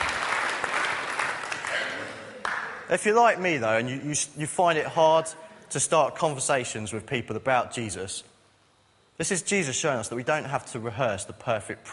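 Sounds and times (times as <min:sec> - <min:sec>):
applause: 0:00.0 - 0:02.9
speech: 0:02.9 - 0:08.3, 0:09.2 - 0:11.9.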